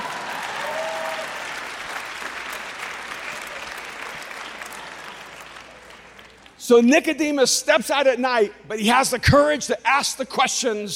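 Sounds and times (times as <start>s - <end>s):
applause: 0.0s - 6.6s
speech: 6.7s - 10.9s.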